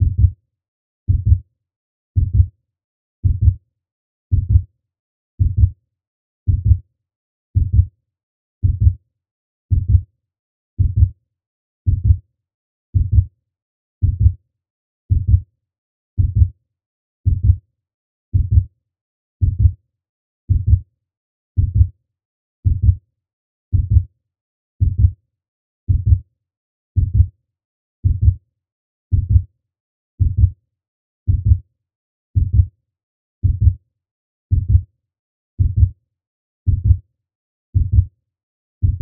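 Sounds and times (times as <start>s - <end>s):
fast heartbeat: 0.0s - 0.3s, 1.1s - 1.4s, 2.2s - 2.5s, 3.2s - 3.6s, 4.3s - 4.7s, 5.4s - 5.7s, 6.5s - 6.8s, 7.6s - 7.9s, 8.6s - 9.0s, 9.7s - 10.0s, 10.8s - 11.1s, 11.9s - 12.2s, 13.0s - 13.3s, 14.0s - 14.4s, 15.1s - 15.4s, 16.2s - 16.5s, 17.2s - 17.6s, 18.3s - 18.7s, 19.4s - 19.8s, 20.5s - 20.8s, 21.6s - 21.9s, 22.6s - 23.0s, 23.7s - 24.1s, 24.8s - 25.2s, 25.9s - 26.2s, 27.0s - 27.3s, 28.0s - 28.4s, 29.1s - 29.5s, 30.2s - 30.6s, 31.3s - 31.6s, 32.4s - 32.7s, 33.4s - 33.8s, 34.5s - 34.8s, 35.6s - 35.9s, 36.7s - 37.0s, 37.8s - 38.1s, 38.8s - 39.0s.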